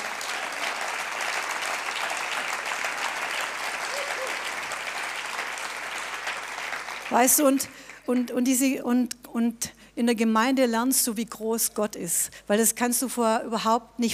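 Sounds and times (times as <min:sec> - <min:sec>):
applause: 0:00.0 - 0:08.3
speech: 0:07.1 - 0:14.1.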